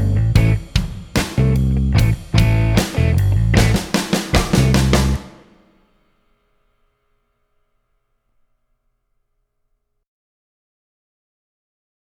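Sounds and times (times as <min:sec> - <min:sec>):
major pentatonic blues backing track: 0:00.0 - 0:05.6.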